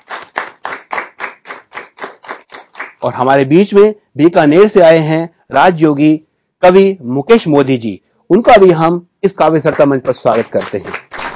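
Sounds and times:
audience clapping in unison to welcome a poet at a poetry stage event: 0.0 - 3.2, 9.7 - 11.3
speech: 3.0 - 11.0.

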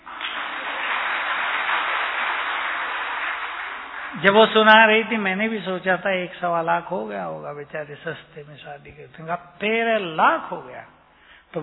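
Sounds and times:
audience clapping at a talk in Hindi: 0.0 - 4.9
speech: 4.1 - 11.6.

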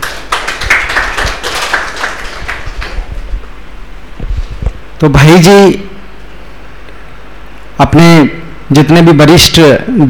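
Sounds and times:
loud clapping: 0.0 - 3.2
speech: 5.0 - 5.9, 7.8 - 10.0.

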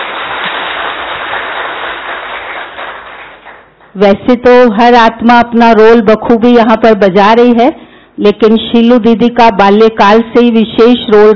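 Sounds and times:
audience clapping: 0.0 - 4.0
speech: 4.0 - 11.3.

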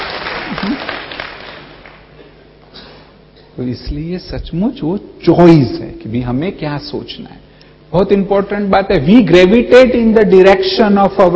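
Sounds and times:
audience applause: 0.0 - 2.1
speech: 3.6 - 11.3.

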